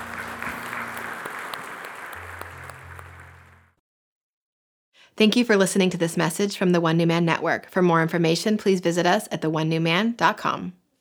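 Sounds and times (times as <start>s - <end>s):
audience hand clapping: 0.0s - 3.8s
speech: 5.2s - 10.8s.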